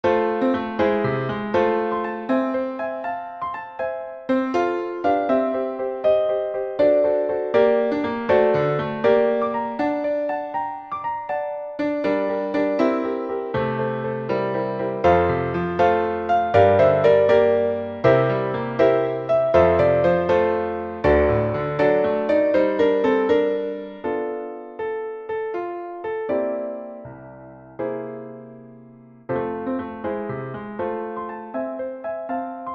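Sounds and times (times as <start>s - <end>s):
piano: 0.0s - 32.7s.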